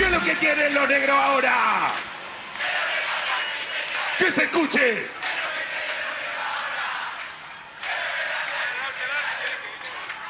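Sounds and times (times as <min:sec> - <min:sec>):
applause: 0:00.2 - 0:10.2
speech: 0:04.2 - 0:05.2.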